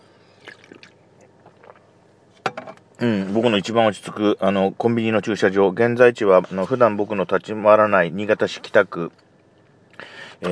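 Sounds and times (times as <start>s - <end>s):
person drinking coffee: 0.3s - 2.0s
speech: 3.0s - 9.2s, 10.0s - 10.5s.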